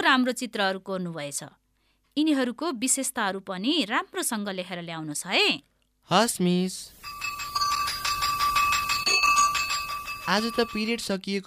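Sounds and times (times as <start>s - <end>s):
speech: 0.0s - 1.6s, 2.2s - 7.4s, 10.3s - 11.4s
electric school bell ringing at the end of a class period: 7.0s - 11.0s.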